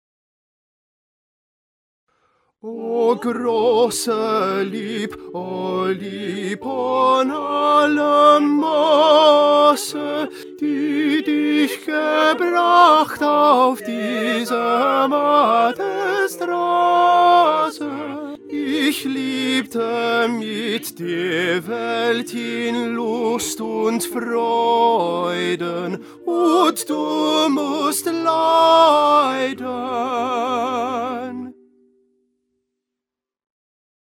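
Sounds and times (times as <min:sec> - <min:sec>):
tenor singing: 0:02.6 - 0:31.6.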